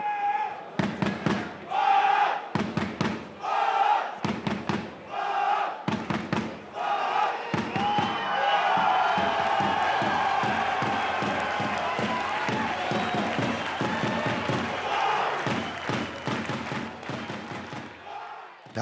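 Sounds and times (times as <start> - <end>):
football stadium crowd cheering and chanting before kickoff: 0.0 - 18.8
rhythmic claps and bangs: 0.8 - 1.6, 2.5 - 3.4, 4.2 - 5.1, 5.8 - 6.8, 7.5 - 18.1.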